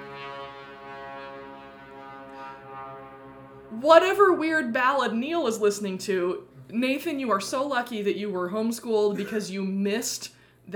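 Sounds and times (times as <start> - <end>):
airplane flying overhead: 0.0 - 4.6
speech: 3.8 - 10.7.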